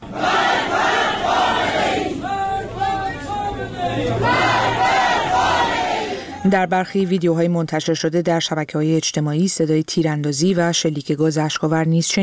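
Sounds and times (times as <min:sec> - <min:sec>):
protesters chanting slogans at a mourning ceremony: 0:00.0 - 0:06.7
speech: 0:06.4 - 0:12.2.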